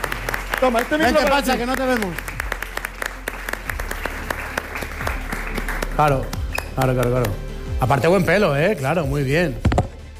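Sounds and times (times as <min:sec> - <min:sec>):
audience applause: 0:00.0 - 0:06.4
speech: 0:00.6 - 0:02.3, 0:06.0 - 0:09.7.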